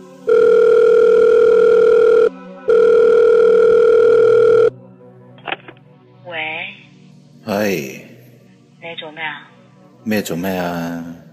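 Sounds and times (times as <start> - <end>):
telephone ringing tone of outgoing call: 0.2 - 4.7
speech: 10.0 - 11.1.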